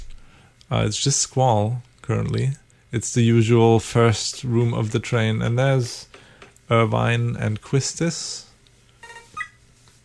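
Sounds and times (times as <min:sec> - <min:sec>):
speech: 0:00.7 - 0:08.5
short electronic beeps from a video game ID machine: 0:09.0 - 0:09.6.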